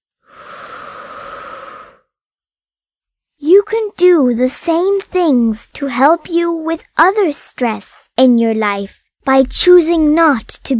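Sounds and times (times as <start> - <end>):
long airy breath during a stress-relief breathing exercise: 0.2 - 2.2
speech: 3.7 - 10.7.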